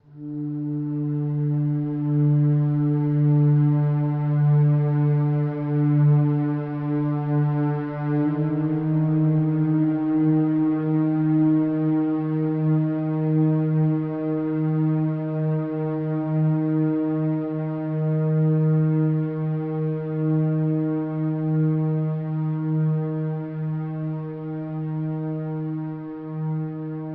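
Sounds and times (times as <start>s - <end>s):
ambient music: 0.0s - 27.1s.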